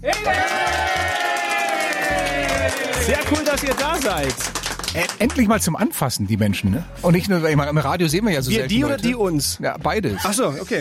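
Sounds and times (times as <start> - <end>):
crowd of visitors cheering: 0.0 - 5.6
speech: 3.1 - 10.8.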